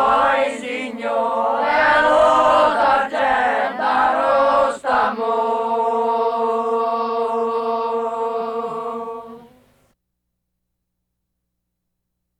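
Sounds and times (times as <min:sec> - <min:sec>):
village chorus singing: 0:00.0 - 0:09.6.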